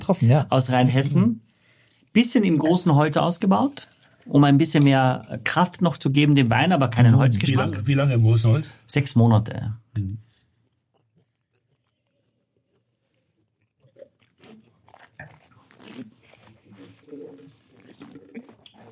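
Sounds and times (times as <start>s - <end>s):
speech: 0.1s - 1.4s, 2.1s - 10.3s
person chewing and crunching asparagus with asparagus butter: 10.3s - 18.9s.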